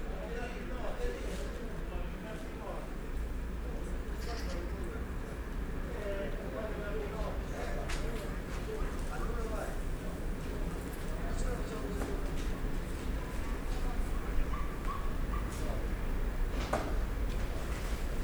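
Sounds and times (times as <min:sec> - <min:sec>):
train station ambience: 0:00.0 - 0:18.2.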